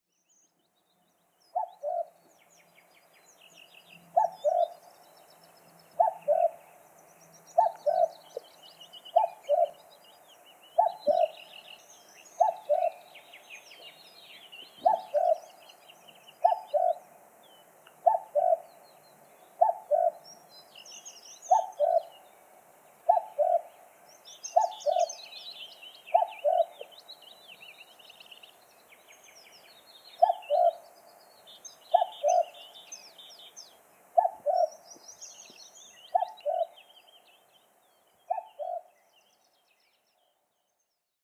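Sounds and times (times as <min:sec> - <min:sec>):
common cuckoo Cuculus canorus calling: 0:01.6 - 0:02.1, 0:04.2 - 0:04.8, 0:05.9 - 0:06.6, 0:07.6 - 0:08.4, 0:09.1 - 0:09.8, 0:10.8 - 0:11.4, 0:12.4 - 0:13.1, 0:14.8 - 0:15.6, 0:16.4 - 0:17.0, 0:17.9 - 0:18.7, 0:19.6 - 0:20.2, 0:21.4 - 0:22.2, 0:23.1 - 0:23.8, 0:24.5 - 0:25.2, 0:26.0 - 0:26.9, 0:30.2 - 0:30.9, 0:31.9 - 0:32.6, 0:34.2 - 0:34.8, 0:35.5 - 0:36.8, 0:38.3 - 0:38.9.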